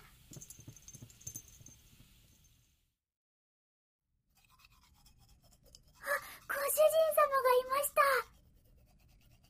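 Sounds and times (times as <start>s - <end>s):
toothbrush scrubbing teeth: 4.3s - 9.4s.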